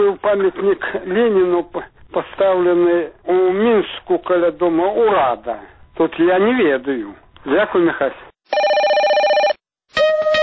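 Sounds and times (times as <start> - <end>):
speech: 0.1 - 8.6
electronic telephone ringing for a radio call-in segment: 8.5 - 9.6.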